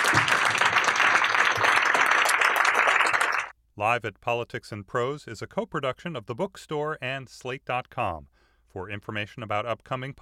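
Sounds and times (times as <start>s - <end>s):
audience applause: 0.0s - 3.5s
speech: 3.8s - 10.2s.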